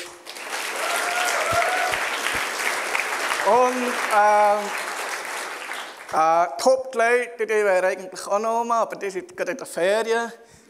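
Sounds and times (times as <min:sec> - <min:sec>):
audience applause: 0:00.0 - 0:06.2
speech: 0:03.4 - 0:04.9, 0:06.1 - 0:10.5.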